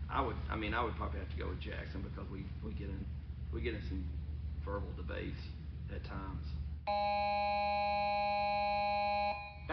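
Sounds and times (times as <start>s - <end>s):
speech: 0.1s - 9.7s
electronic buzzer tone ending the show: 6.9s - 9.7s.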